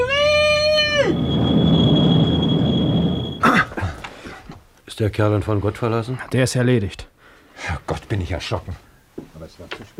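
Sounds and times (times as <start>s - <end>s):
tram rumbling: 0.0s - 4.0s
tram brake squeal: 0.5s - 3.5s
speech: 5.0s - 9.9s.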